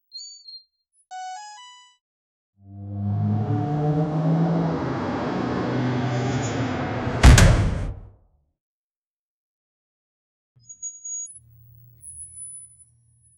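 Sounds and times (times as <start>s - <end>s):
smart automatic gates opening: 2.8s - 8.0s.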